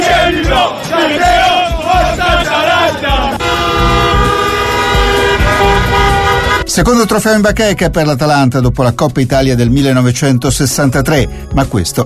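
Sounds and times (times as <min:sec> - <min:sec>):
football fans chanting and cheering at night: 0:00.0 - 0:06.6
car horns honking: 0:00.9 - 0:06.8
speech: 0:06.8 - 0:12.0.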